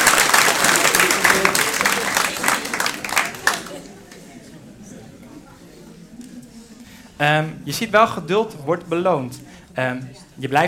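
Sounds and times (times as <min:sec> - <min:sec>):
audience applause: 0:00.0 - 0:04.2
speech: 0:07.2 - 0:10.6.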